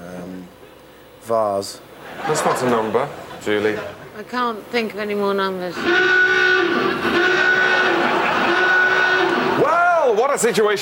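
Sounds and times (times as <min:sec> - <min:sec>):
speech: 0:01.3 - 0:06.4, 0:10.4 - 0:10.7
laughter: 0:02.0 - 0:04.2, 0:07.0 - 0:09.6
loud two-tone alarm: 0:05.7 - 0:09.7.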